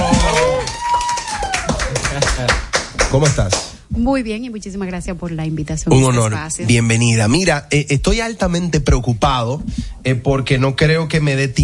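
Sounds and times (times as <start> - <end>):
loud applause: 0.0 - 3.3
speech: 3.1 - 11.6.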